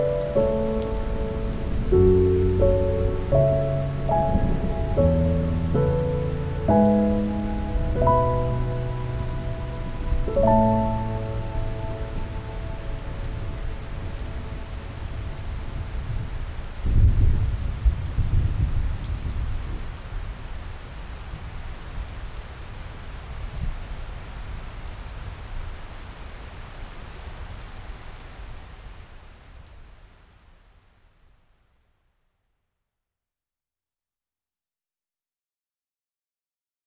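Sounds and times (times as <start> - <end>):
piano: 0.0 - 17.9
rain: 0.0 - 32.3.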